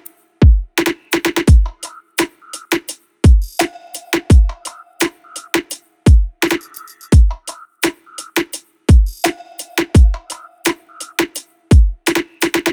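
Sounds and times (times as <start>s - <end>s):
full music loop at 85: 0.5s - 12.7s.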